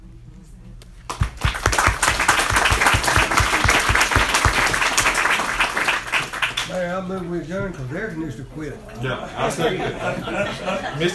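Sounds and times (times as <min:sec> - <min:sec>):
audience applause: 0:01.1 - 0:06.8
speech: 0:06.9 - 0:11.1
laughter: 0:09.0 - 0:11.1.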